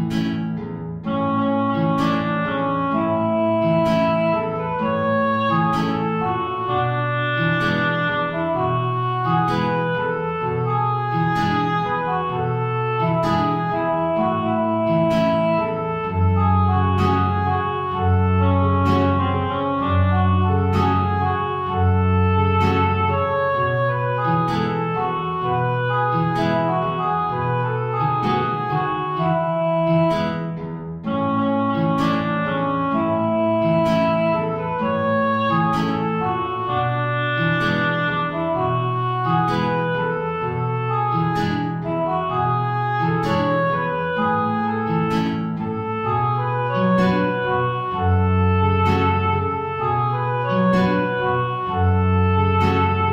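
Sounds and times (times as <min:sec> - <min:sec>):
tango play-along music: 0:00.2 - 0:53.0.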